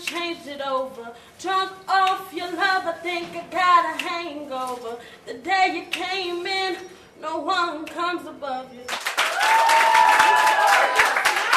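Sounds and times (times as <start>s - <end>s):
speech: 0.1s - 11.2s
audience applause at an open mic night in a small youth center: 9.0s - 11.5s.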